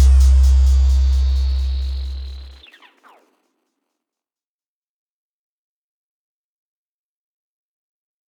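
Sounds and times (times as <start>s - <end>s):
Brazilian funk automotivo music: 0.0s - 2.6s.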